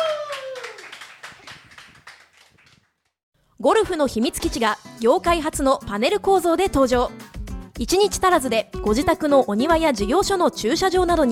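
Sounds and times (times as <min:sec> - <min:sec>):
audience applause: 0:00.0 - 0:02.8
speech: 0:03.6 - 0:07.2, 0:07.8 - 0:11.2.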